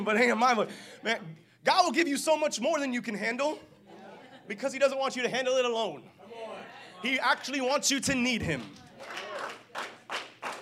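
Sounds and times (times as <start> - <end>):
speech: 0.0 - 3.7, 4.5 - 8.8
laughter: 3.5 - 5.0
audience clapping: 8.4 - 10.6.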